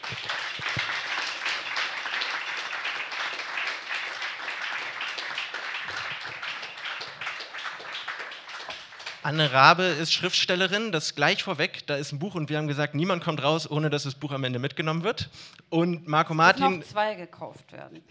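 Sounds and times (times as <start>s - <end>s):
audience applause: 0.0s - 9.8s
speech: 9.2s - 18.1s.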